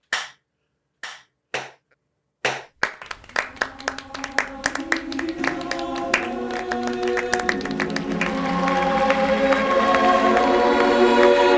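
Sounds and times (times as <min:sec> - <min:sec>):
people cheering: 0:02.8 - 0:11.5
slow clap building into applause: 0:02.8 - 0:11.5.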